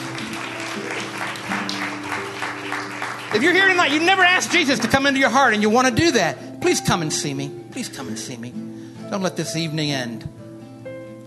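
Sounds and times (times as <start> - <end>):
audience applause: 0.0 - 5.6
speech: 3.3 - 10.4.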